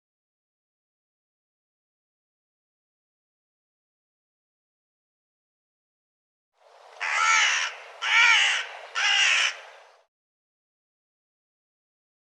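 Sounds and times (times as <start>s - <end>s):
bird giving harsh hoarse rasping caws: 7.0s - 10.1s.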